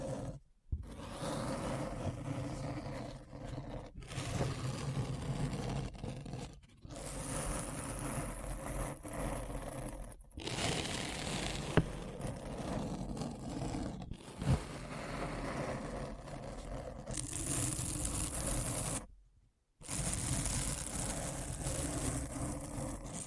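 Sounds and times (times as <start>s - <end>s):
deep scratching: 0.0s - 19.1s, 19.8s - 23.2s.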